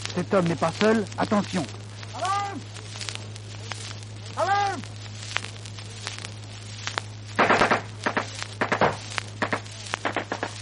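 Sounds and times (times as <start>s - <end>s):
steady low hum: 0.0s - 10.5s
speech: 0.2s - 1.8s
gunfire in trench combat: 7.4s - 10.5s.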